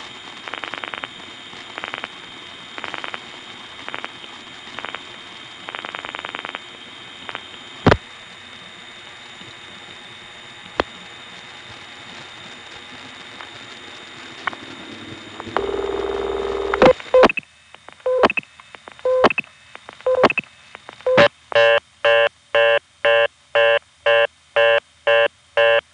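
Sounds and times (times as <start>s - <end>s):
telephone reorder tone from Harrisonburg long distance equipment: 0.5s - 1.1s, 1.8s - 2.1s, 2.8s - 3.2s, 3.8s - 4.2s, 4.8s - 5.1s, 5.7s - 6.6s, 14.4s - 17.4s, 18.0s - 18.4s, 19.0s - 25.8s
rapid short telephone beeps: 18.1s - 18.4s, 19.1s - 19.5s, 20.1s - 20.5s, 21.1s - 25.8s.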